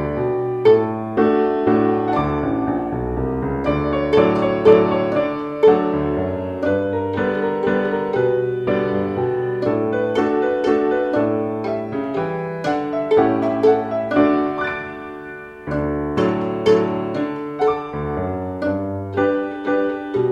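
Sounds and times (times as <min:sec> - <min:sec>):
piano playing a waltz: 0:00.0 - 0:20.3
pizzicato violin playing a waltz: 0:00.0 - 0:20.3.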